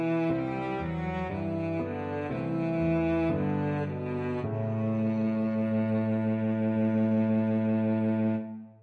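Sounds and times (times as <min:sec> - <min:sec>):
cello: 0:00.0 - 0:08.8.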